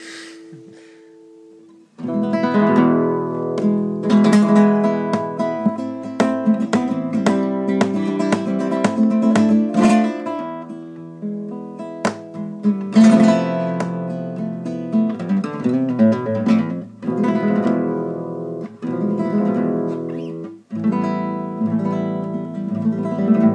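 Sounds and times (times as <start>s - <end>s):
flamenco music: 0.2s - 23.5s.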